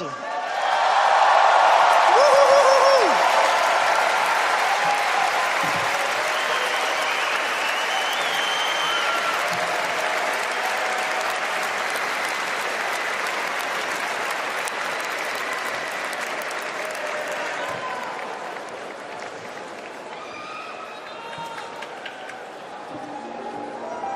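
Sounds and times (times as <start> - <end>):
audience applause welcoming a performer: 0.0 - 23.9
whoops and whistle: 2.1 - 3.2, 6.1 - 9.6.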